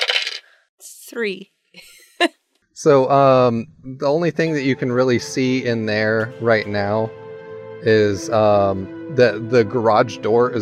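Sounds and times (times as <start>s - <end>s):
dice rattling across a hard surface: 0.0s - 0.4s
speech: 1.1s - 7.2s, 7.8s - 10.6s.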